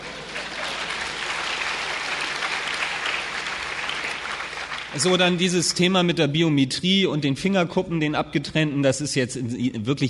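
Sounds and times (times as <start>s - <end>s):
audience applause: 0.0s - 5.4s
speech: 4.9s - 10.0s.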